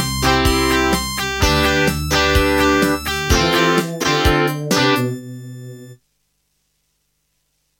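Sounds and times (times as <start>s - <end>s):
Creative Midi Blaster MB10 MIDI synthesizer wave: 0.2s - 6.0s.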